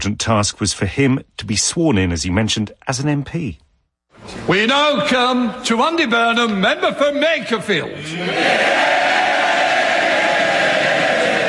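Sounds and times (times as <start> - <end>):
speech: 0.0 - 3.6, 4.2 - 9.2
MPs shouting and jeering in the House of Commons: 8.0 - 11.4.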